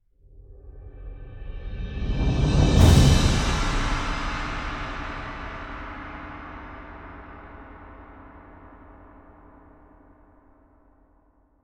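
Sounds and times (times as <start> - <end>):
full orchestral percussion hit: 2.3 - 8.4.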